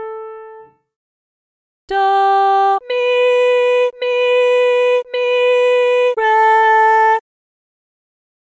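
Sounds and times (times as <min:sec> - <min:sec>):
person singing medium solfa training exercise: 0:01.9 - 0:07.2.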